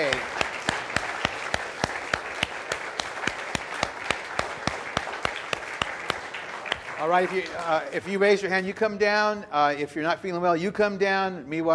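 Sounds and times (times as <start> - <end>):
audience applause: 0.0 - 8.5
speech: 7.0 - 11.7.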